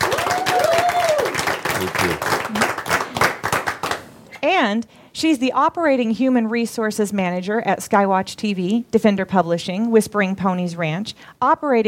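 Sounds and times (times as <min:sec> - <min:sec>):
person whooping: 0:00.0 - 0:01.5
audience applause welcoming a speaker to the stage: 0:00.0 - 0:04.1
speech: 0:01.8 - 0:02.7, 0:04.6 - 0:11.8.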